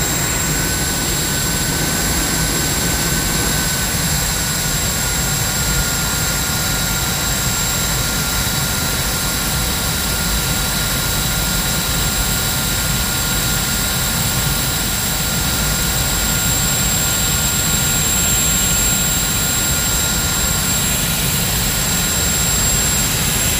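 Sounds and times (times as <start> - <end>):
jet fighter engine starting and idling: 0.0 - 23.5.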